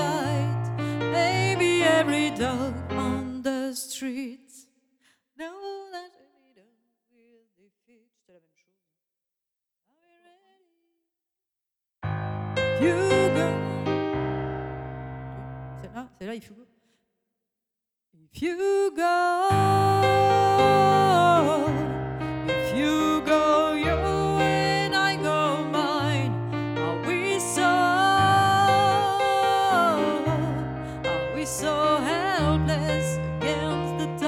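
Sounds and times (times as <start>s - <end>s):
piano duet: 0.0s - 3.6s, 12.0s - 16.0s, 19.4s - 34.2s
voice: 0.0s - 4.4s, 12.8s - 13.8s, 15.8s - 16.6s, 18.4s - 22.0s, 22.6s - 30.6s, 31.3s - 34.2s.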